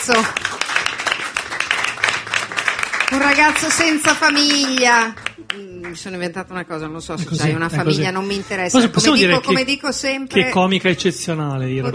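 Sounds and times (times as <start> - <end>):
audience applause at an Italian comedy show: 0.0 - 6.0
speech: 0.1 - 0.5, 3.1 - 11.9.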